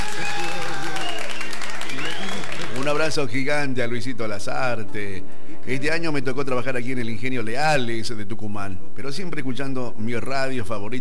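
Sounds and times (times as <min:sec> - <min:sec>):
applause: 0:00.0 - 0:03.2
speech: 0:02.9 - 0:10.9.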